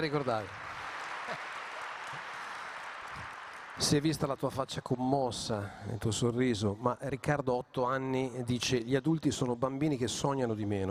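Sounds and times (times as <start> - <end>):
speech: 0.0 - 0.6, 1.3 - 1.5, 3.8 - 10.8
audience applause for a young boy on a talk programme: 0.0 - 4.7.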